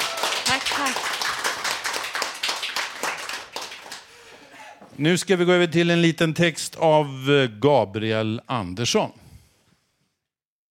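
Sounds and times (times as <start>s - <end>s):
audience applause: 0.0s - 4.8s
speech: 5.0s - 9.2s.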